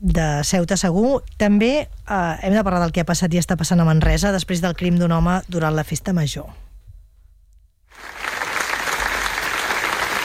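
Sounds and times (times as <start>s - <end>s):
speech: 0.0s - 6.7s
applause at a memorial gathering in Manresa: 7.9s - 10.2s.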